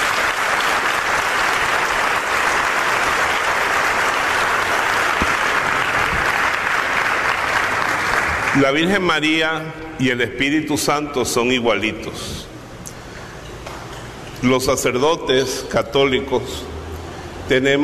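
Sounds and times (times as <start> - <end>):
sustained applause from a large crowd: 0.0 - 8.8
speech: 8.6 - 12.5, 14.4 - 16.7, 17.5 - 17.8.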